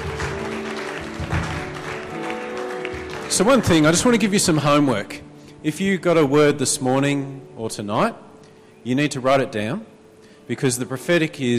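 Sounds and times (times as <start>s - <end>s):
round of applause: 0.0s - 4.6s
speech: 3.4s - 9.9s, 10.5s - 11.5s.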